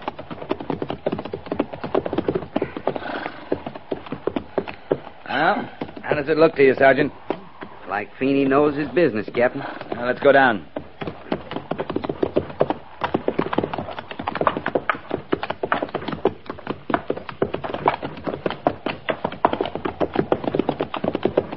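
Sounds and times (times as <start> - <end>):
horse hooves clip-clopping: 0.0 - 21.5
speech: 5.4 - 7.2, 7.9 - 10.7.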